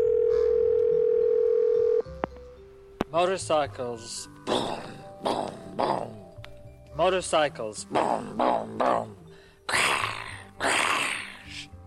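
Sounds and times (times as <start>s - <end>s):
telephone dial tone: 0.0s - 2.0s
speech: 3.1s - 6.1s, 7.0s - 9.9s.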